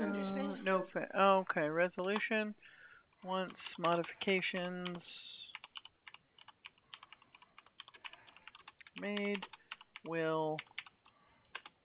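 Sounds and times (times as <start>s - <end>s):
speech: 0.7s - 5.2s, 9.0s - 10.7s
typing on a computer keyboard: 3.2s - 11.8s.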